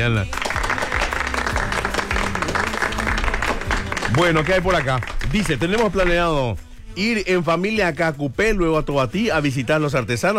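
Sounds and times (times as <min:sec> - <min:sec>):
speech: 0:00.0 - 0:00.4, 0:04.1 - 0:10.3
applause: 0:00.0 - 0:06.2.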